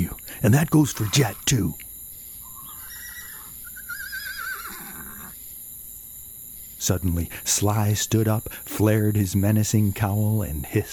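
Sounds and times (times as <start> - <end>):
speech: 0.0 - 1.8, 6.9 - 10.9
hiss: 0.0 - 10.9
horse neighing in a barn: 2.5 - 5.4.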